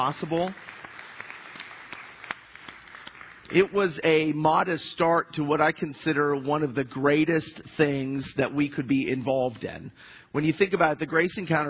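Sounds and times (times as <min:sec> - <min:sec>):
speech: 0:00.0 - 0:00.7, 0:03.5 - 0:11.6
faint audience applause for volunteers at a church ministry gathering: 0:00.0 - 0:03.7.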